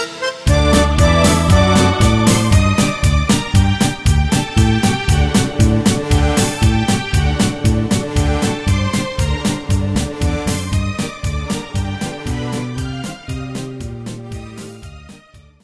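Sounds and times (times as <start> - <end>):
G minor alto backing track: 0.0 - 15.3.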